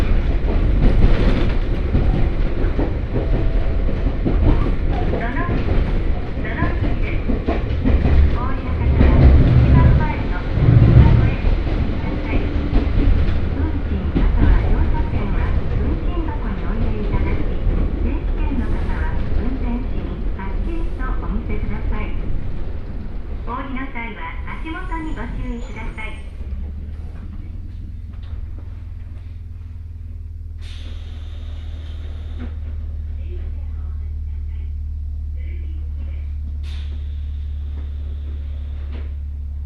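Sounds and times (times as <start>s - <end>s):
Hokuriku Railway Ishikawa Line train rumbling and rattling: 0.0s - 39.6s
sharp squeals and clicks: 24.8s - 26.4s.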